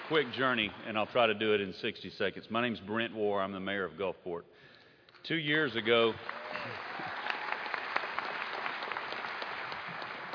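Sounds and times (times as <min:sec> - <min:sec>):
audience applauding the mayor of Gulfport: 0:00.0 - 0:00.8, 0:05.9 - 0:10.3
speech: 0:00.1 - 0:06.8.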